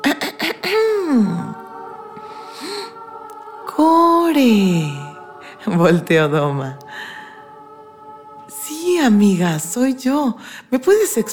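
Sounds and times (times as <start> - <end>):
person clearing throat for a story character: 0.0 - 1.6
speech: 4.4 - 5.0, 5.7 - 6.8, 9.0 - 11.3.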